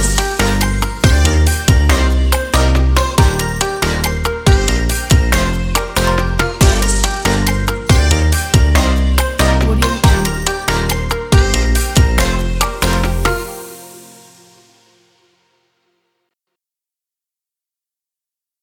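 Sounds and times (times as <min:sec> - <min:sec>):
fashion electronic future bass music: 0:00.0 - 0:14.2.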